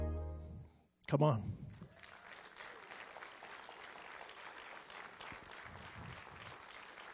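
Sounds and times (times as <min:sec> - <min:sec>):
speech: 0:01.1 - 0:01.7
crowd applauding: 0:01.7 - 0:07.1.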